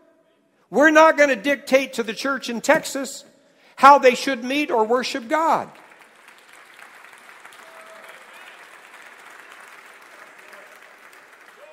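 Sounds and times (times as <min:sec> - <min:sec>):
speech: 0:00.7 - 0:05.8
audience clapping: 0:05.5 - 0:11.7.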